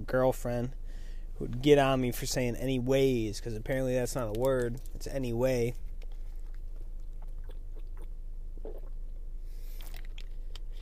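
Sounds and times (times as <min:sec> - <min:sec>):
speech: 0:00.1 - 0:05.8
person drinking water: 0:05.8 - 0:10.8.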